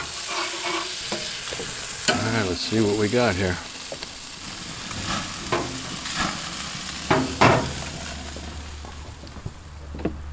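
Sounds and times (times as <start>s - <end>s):
spatula scraping and knocking: 0.0s - 1.4s
food sizzling on a grill: 0.0s - 9.2s
speech: 2.1s - 3.7s.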